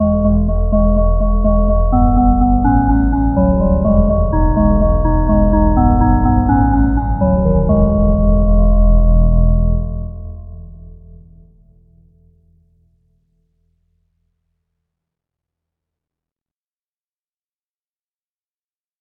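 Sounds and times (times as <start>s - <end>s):
bowed glass bass tone: 0.0s - 11.5s.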